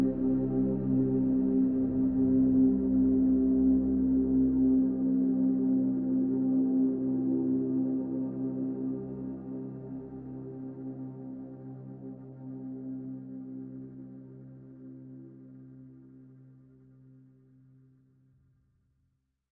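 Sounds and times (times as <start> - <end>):
synth pads in C: 0.0 - 15.3.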